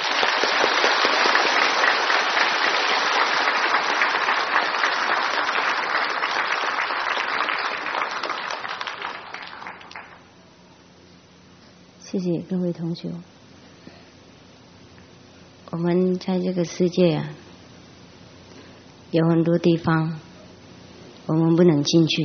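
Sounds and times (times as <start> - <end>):
warm applause from audience: 0.0 - 10.4
speech: 12.2 - 13.4, 15.8 - 17.4, 19.1 - 20.2, 21.3 - 22.2.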